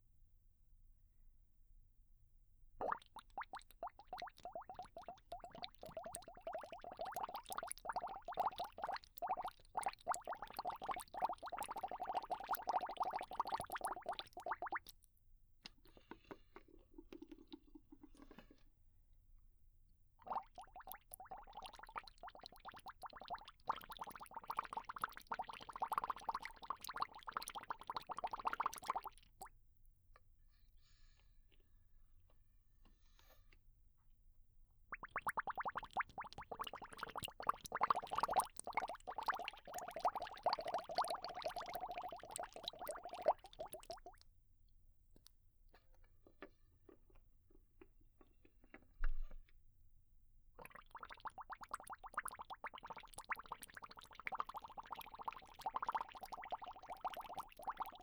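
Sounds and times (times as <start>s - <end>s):
bubbles: 2.8s - 14.9s, 20.2s - 29.5s, 34.9s - 44.2s, 50.6s - 58.0s.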